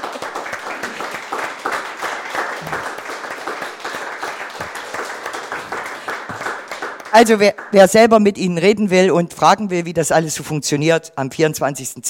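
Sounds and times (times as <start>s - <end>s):
audience applause: 0.0s - 7.8s
speech: 7.1s - 12.0s.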